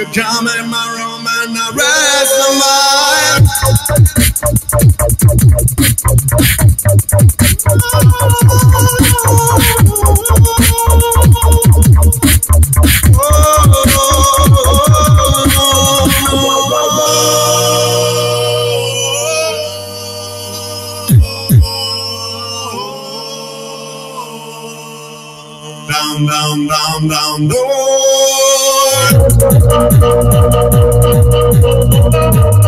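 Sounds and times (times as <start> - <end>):
beatboxing with loop station: 1.7 - 20.1, 21.0 - 22.0, 26.1 - 32.6.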